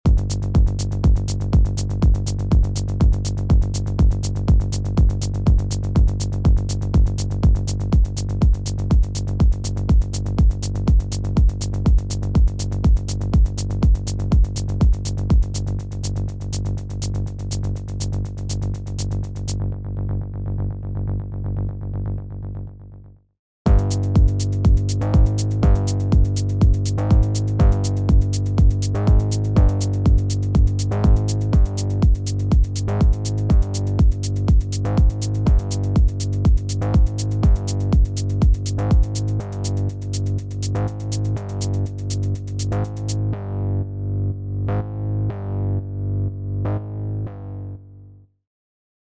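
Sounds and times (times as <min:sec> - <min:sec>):
techno kick drum: 0:00.0 - 0:19.6, 0:23.7 - 0:43.2
sidechained bass: 0:00.0 - 0:23.0, 0:23.7 - 0:47.8.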